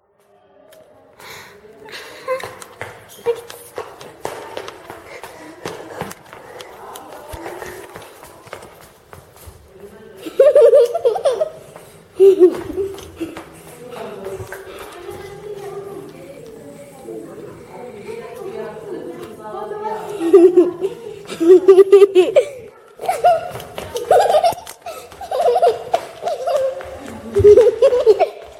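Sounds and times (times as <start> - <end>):
little girl running: 1.9 - 16.8, 18.1 - 28.5
little girl laughing: 10.3 - 13.4, 20.1 - 28.5.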